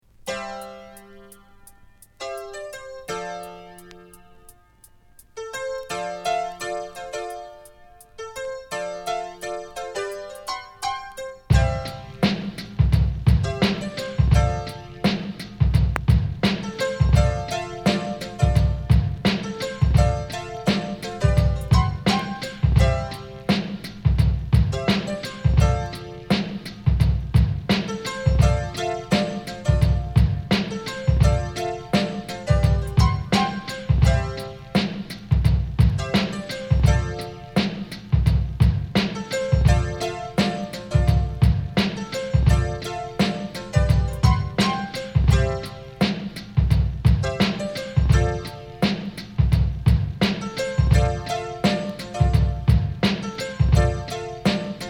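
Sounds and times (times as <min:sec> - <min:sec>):
instrumental music: 0:00.0 - 0:54.8.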